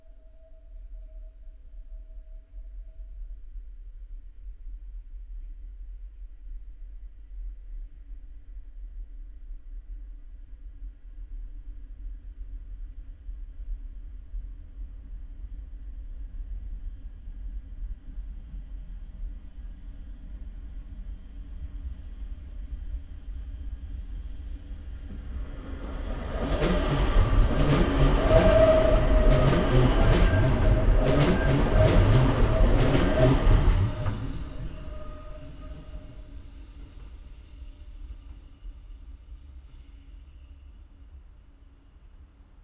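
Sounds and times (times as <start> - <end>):
distant train passing through a tunnel: 24.6 - 37.2.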